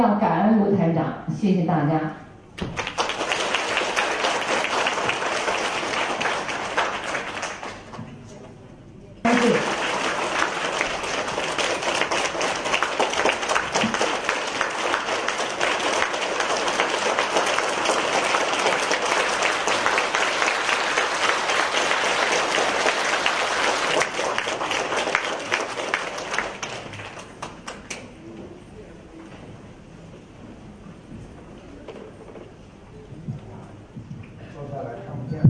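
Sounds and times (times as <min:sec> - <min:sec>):
speech: 0:00.0 - 0:02.9
warm crowd applause: 0:02.6 - 0:08.0, 0:09.3 - 0:28.1.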